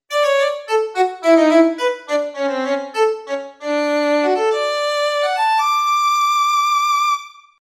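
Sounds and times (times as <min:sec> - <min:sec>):
violin: 0:00.1 - 0:07.5.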